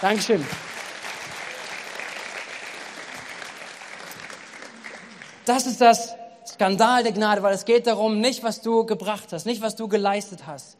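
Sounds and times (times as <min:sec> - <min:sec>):
speech: 0:00.0 - 0:00.7, 0:05.5 - 0:10.7
audience applause: 0:00.0 - 0:05.5.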